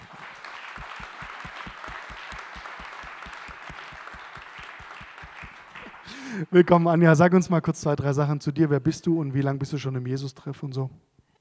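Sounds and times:
audience applause for a guest at a Jesus-Treff gathering: 0.0s - 6.4s
speech: 6.3s - 11.1s.

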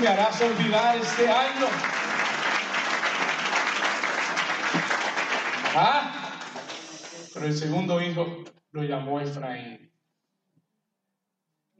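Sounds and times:
speech: 0.0s - 2.0s, 5.8s - 6.2s, 7.4s - 9.9s
audience applause: 0.0s - 7.4s.

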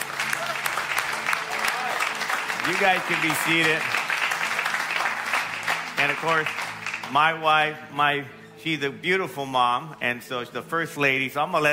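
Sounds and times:
audience hand clapping: 0.0s - 7.6s
speech: 2.7s - 4.0s, 6.0s - 11.7s.

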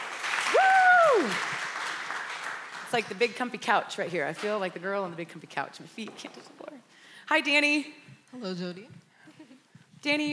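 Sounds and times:
audience clapping: 0.0s - 3.4s
person whooping: 0.5s - 1.4s
speech: 2.9s - 9.0s, 10.0s - 10.3s.

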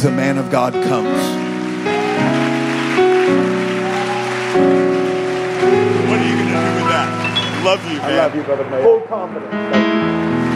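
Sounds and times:
speech: 0.0s - 2.4s, 5.6s - 10.3s
audience clapping: 1.2s - 8.6s.

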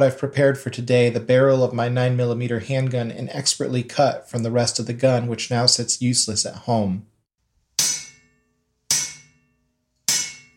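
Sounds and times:
speech: 0.0s - 7.1s
hammer striking metal: 7.7s - 10.5s.

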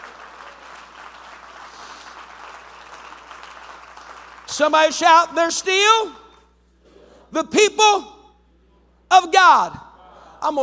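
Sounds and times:
audience clapping hands: 0.0s - 4.8s
speech: 4.5s - 6.2s, 7.3s - 8.1s, 9.1s - 9.8s, 10.4s - 10.6s.

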